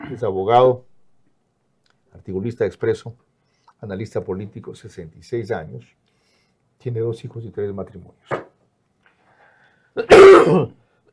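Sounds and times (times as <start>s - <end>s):
throat clearing cough: 0.0s - 0.3s, 10.0s - 10.8s
speech: 0.1s - 0.9s, 2.2s - 6.1s, 6.8s - 8.4s, 10.0s - 10.8s.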